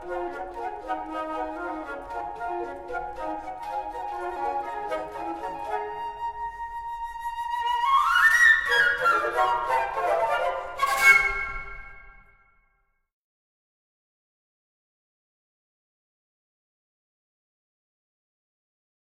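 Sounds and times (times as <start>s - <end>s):
quartet for four flutes: 0.0s - 12.4s.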